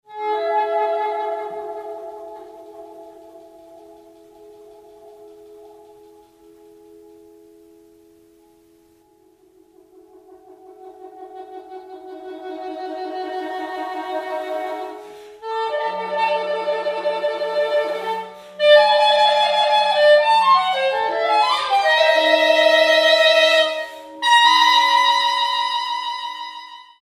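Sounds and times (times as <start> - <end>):
saxophone: 0.0 - 27.0.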